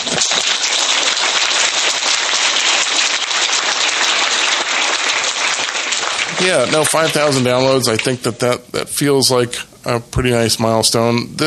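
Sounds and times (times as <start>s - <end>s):
celebrating and cheering sound effect of loud applause: 0.0s - 8.3s
speech: 6.4s - 11.4s.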